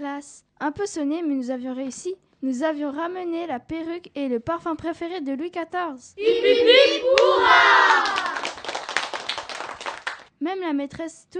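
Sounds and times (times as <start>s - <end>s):
speech: 0.0s - 8.3s, 10.4s - 11.3s
children cheering: 6.2s - 10.1s
hands clapping: 6.7s - 10.3s.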